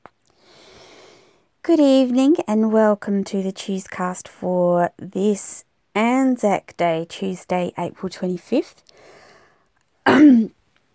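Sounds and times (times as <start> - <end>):
rough breath: 0.3 - 1.5, 8.9 - 9.7
speech: 1.7 - 9.2, 10.1 - 10.6
throat clearing turning into a choking cough: 10.0 - 10.6.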